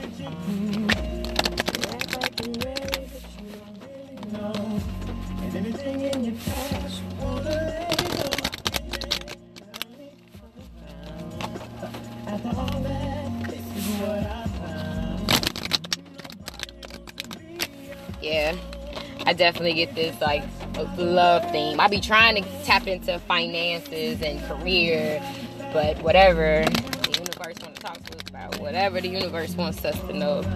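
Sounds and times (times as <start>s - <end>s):
tarot card deck being shuffled: 0.0s - 10.2s, 10.8s - 20.8s, 26.5s - 29.3s
steady musical background: 0.0s - 30.5s
speech: 19.4s - 26.9s, 28.8s - 30.5s.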